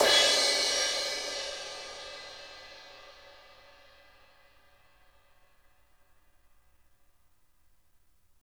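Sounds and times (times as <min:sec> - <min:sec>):
crash cymbal from Roland MV8800: 0:00.0 - 0:05.2.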